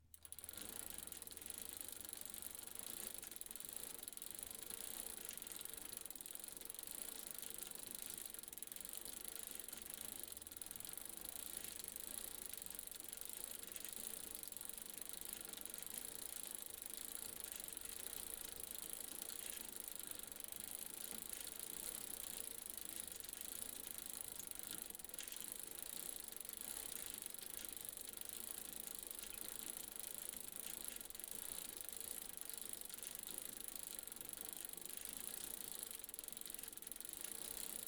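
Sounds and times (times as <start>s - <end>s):
bicycle riding: 0.1s - 37.8s.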